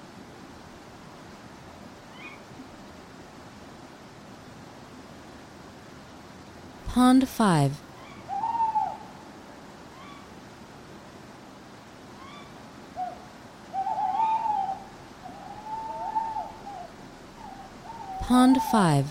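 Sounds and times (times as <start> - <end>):
constant hiss: 0.0 - 19.0
owls hooting: 2.1 - 2.5, 7.9 - 10.4, 12.1 - 19.0
speech: 6.9 - 7.8, 18.3 - 19.0.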